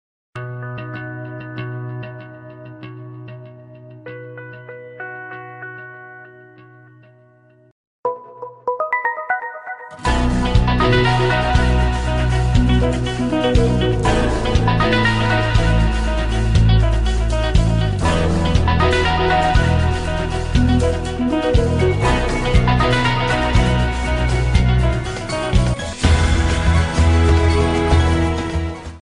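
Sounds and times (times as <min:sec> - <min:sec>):
Samsung mix ringtone: 0:08.0 - 0:28.3.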